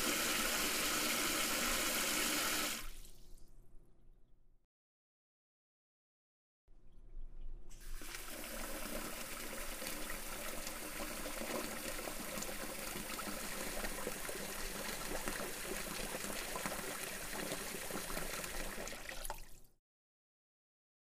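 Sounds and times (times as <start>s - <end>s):
water flowing into a metal sink: 0.0s - 3.4s, 7.8s - 19.7s.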